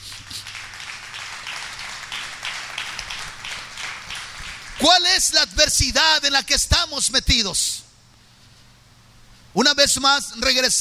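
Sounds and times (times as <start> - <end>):
crowd applause: 0.2 - 4.9
speech: 4.8 - 7.8, 9.6 - 10.7.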